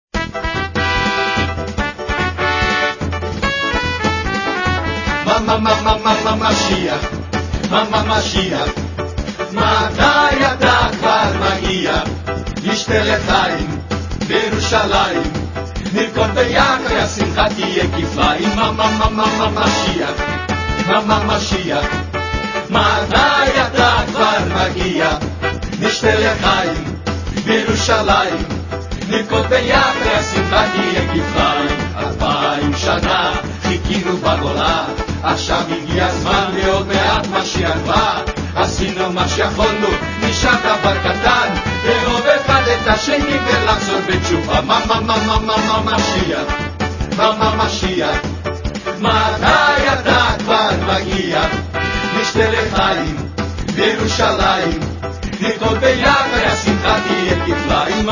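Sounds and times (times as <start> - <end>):
samba song: 0.1 - 58.1.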